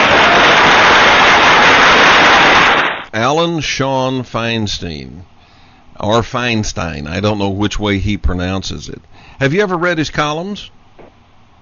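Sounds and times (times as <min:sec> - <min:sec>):
applause: 0:00.0 - 0:03.1
speech: 0:03.2 - 0:05.3, 0:06.0 - 0:10.8.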